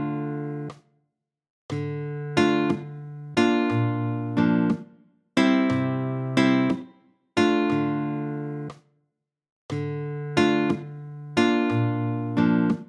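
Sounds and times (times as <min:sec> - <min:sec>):
nylon-string guitar: 0:00.0 - 0:00.7, 0:01.7 - 0:04.8, 0:05.4 - 0:08.7, 0:09.7 - 0:12.8.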